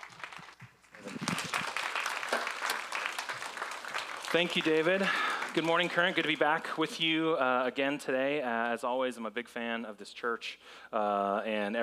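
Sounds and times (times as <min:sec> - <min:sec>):
audience applause at a church service welcoming a speaker: 0:00.0 - 0:07.2
speech: 0:04.3 - 0:11.8.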